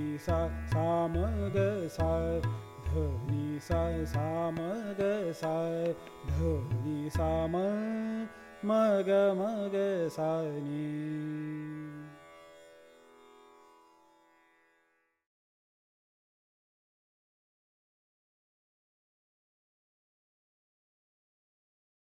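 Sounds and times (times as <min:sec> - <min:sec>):
vocal raga Malkauns: 0:00.0 - 0:12.7.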